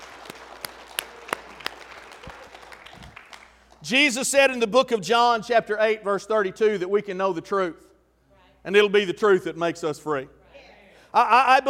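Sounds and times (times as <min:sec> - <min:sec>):
audience clapping: 0:00.0 - 0:03.9
speech: 0:03.8 - 0:07.9, 0:08.6 - 0:10.4, 0:11.1 - 0:11.6.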